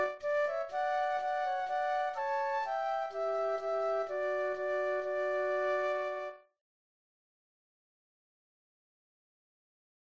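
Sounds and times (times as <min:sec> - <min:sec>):
flute duet playing a folk tune: 0:00.0 - 0:06.5.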